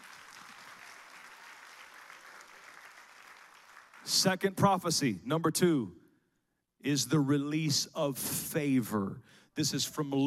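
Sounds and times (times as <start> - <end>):
crowd clapping hands: 0.0 - 4.6
speech: 4.0 - 6.0, 6.8 - 10.2.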